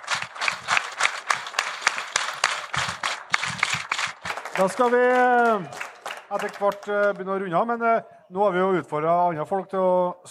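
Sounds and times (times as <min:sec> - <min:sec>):
applause: 0:00.0 - 0:07.4
speech: 0:04.6 - 0:10.2.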